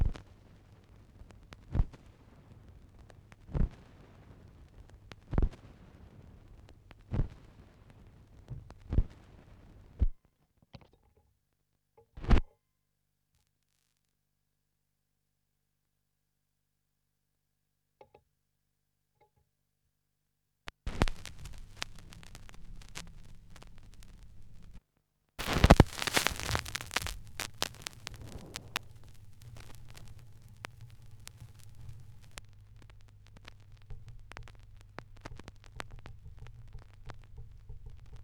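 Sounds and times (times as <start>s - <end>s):
vinyl record noise: 0.0s - 10.1s, 20.7s - 24.8s, 25.4s - 38.2s.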